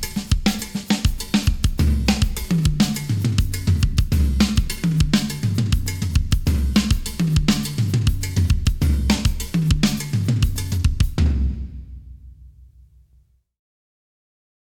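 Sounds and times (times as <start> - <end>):
Afro-Cuban drum groove: 0.0 - 13.2
Afro-Cuban bass groove: 1.8 - 11.2.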